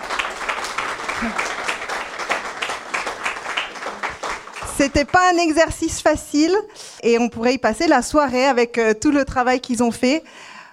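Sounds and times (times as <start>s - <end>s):
audience applause: 0.0s - 5.2s
speech: 1.2s - 1.5s, 4.8s - 10.5s.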